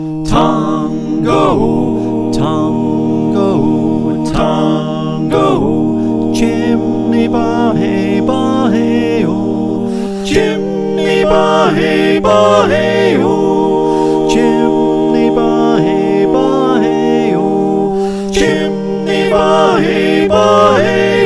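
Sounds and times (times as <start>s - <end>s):
soprano alto tenor bass choir singing: 0.2s - 21.2s.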